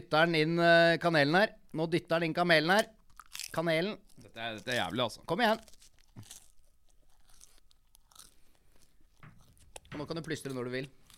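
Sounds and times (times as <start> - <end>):
speech: 0.1 - 6.4, 9.9 - 11.0
chewing a mouthful of dry crackers: 2.7 - 11.1.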